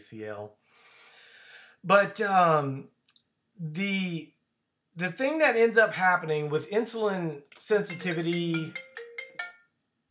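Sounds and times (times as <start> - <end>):
speech: 0.0 - 0.9, 1.8 - 3.0, 3.6 - 4.4, 5.0 - 9.0
phone ringtone pulses during a podcast recording: 7.9 - 9.7.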